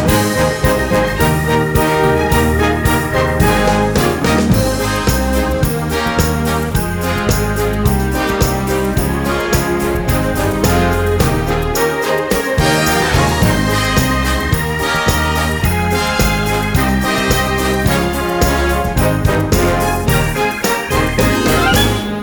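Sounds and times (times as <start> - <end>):
instrumental song medley without vocals: 0.0 - 22.2.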